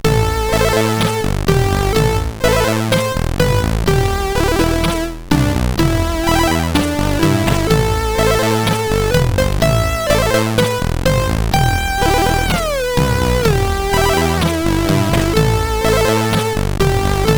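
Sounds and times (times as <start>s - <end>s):
short tune on a SID CSG8580R5 chip: 0.0s - 17.3s.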